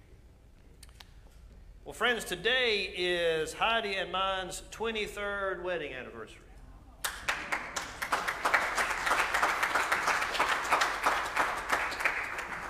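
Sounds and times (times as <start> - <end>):
speech: 1.9 - 6.5
audience applause: 7.1 - 12.6.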